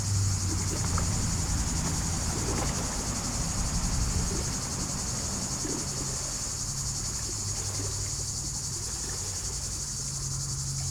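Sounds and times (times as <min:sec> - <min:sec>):
cicadas buzzing in poplars at the water's edge of Lac du Bourget: 0:00.0 - 0:10.8.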